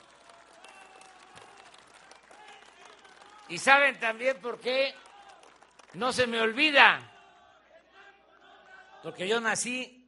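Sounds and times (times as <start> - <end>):
audience applause: 0.0 - 9.0
speech: 3.5 - 5.0, 5.9 - 7.1, 9.0 - 10.0.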